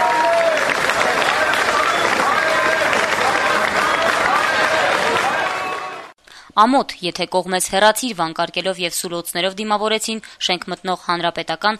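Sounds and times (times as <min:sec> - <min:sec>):
protesters clapping outside a parliamentary session: 0:00.0 - 0:06.2
speech: 0:06.6 - 0:11.7.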